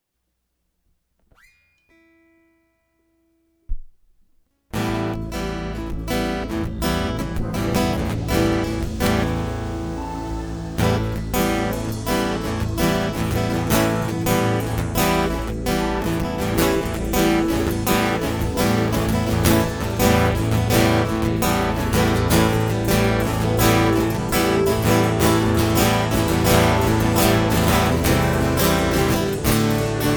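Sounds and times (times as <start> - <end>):
instrumental music: 4.8 - 30.1.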